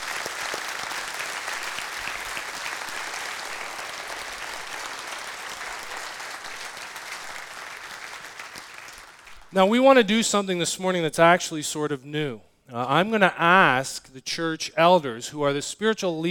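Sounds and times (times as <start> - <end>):
audience round of applause: 0.0 - 9.5
speech: 9.5 - 16.3.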